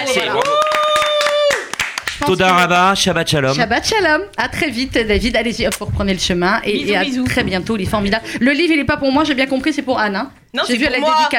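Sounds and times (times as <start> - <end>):
audience applause: 0.0 - 2.6
speech: 2.3 - 11.3.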